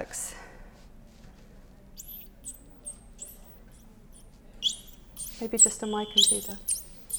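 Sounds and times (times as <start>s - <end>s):
recorded animal whistles: 2.0s - 3.8s, 4.6s - 7.1s
speech: 5.4s - 6.8s.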